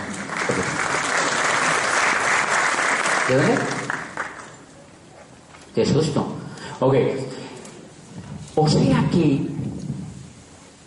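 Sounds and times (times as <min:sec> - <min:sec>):
audience applause: 0:00.0 - 0:04.6
speech: 0:03.3 - 0:03.8, 0:05.8 - 0:07.4, 0:08.6 - 0:09.8.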